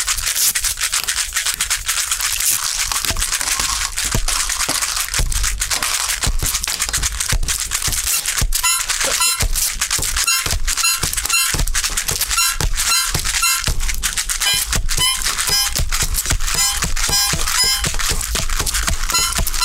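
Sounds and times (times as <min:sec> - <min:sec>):
Tic Tacs rattling: 0:00.1 - 0:19.6
Etch-A-Sketch scraping: 0:00.2 - 0:19.6.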